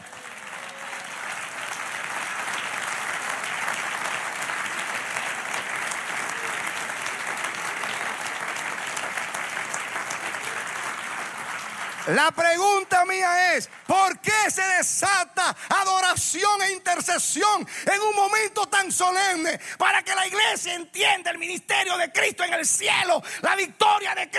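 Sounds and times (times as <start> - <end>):
audience applause: 0.0 - 14.3
speech: 12.1 - 24.3.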